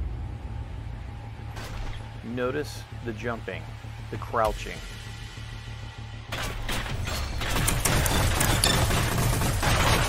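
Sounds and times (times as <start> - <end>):
speech: 2.2 - 5.1
gunfire in the first-person video game Psyber-X: 6.3 - 10.0.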